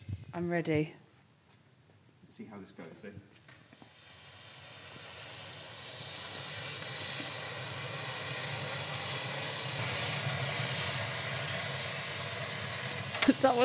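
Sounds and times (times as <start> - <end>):
speech: 0.4 - 1.0, 2.4 - 3.4, 13.3 - 13.6
gingerbread men burning with liquid oxygen: 3.8 - 13.6.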